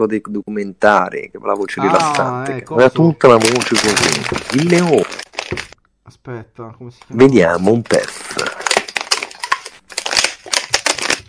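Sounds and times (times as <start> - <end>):
speech: 0.0 - 5.7, 6.3 - 8.6
crunching while eating a snack: 3.2 - 5.8, 7.9 - 11.2.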